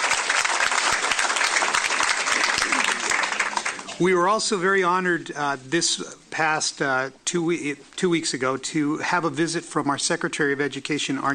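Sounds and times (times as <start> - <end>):
audience applause: 0.0 - 4.0
speech: 4.0 - 11.3.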